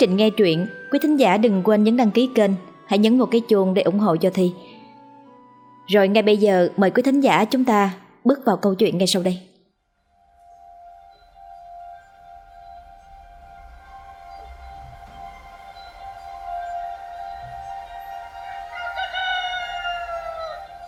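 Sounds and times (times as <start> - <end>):
speech: 0.0 - 4.8, 5.9 - 9.5
rooster crowing: 17.5 - 20.8.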